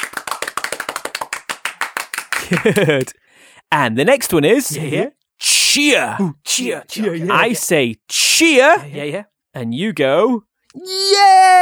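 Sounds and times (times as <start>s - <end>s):
people clapping: 0.0s - 3.1s
laughter: 2.2s - 3.2s, 6.2s - 7.6s
speech: 2.5s - 11.6s.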